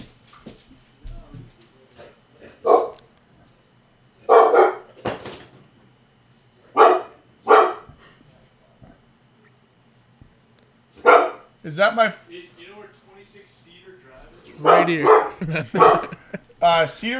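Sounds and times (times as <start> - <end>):
dog barking at a knock on the door: 2.5 - 3.0, 4.2 - 4.9, 6.7 - 8.0, 11.0 - 11.5, 14.6 - 16.2
speech: 11.6 - 12.3, 14.6 - 17.1
laughter: 14.6 - 17.1.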